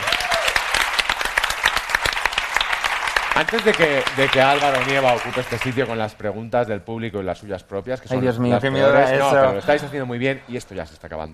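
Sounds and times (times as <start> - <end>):
audience applause: 0.0 - 6.0
speech: 3.4 - 11.3.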